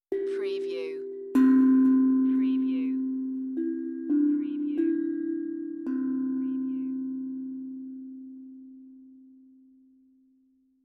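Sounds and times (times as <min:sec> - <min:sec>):
meditative tongue drum tone: 0:00.0 - 0:08.2.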